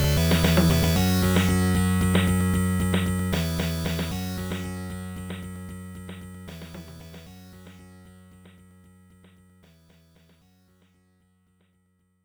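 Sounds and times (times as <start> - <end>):
boss battle background music: 0.0 - 5.5.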